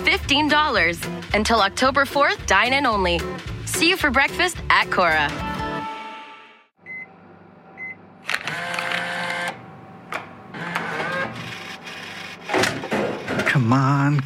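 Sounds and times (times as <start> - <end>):
speech: 0.2 - 5.5, 13.6 - 14.2
vending machine humming: 6.8 - 14.0.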